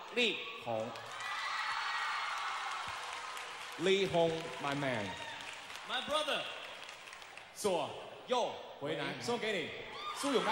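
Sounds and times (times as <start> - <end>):
speech: 0.2 - 1.1, 3.8 - 5.3, 5.9 - 6.6, 7.6 - 10.5
audience applause: 1.0 - 7.5.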